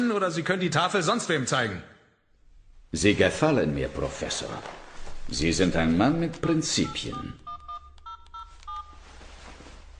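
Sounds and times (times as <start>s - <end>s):
speech: 0.2s - 1.9s, 2.9s - 7.4s
telephone number being dialed: 6.4s - 9.0s.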